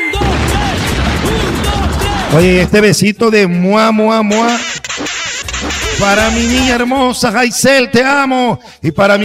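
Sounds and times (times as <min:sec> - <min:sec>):
bomb explosion sound effect: 0:00.2 - 0:02.8
speech: 0:02.3 - 0:04.8, 0:06.0 - 0:09.2.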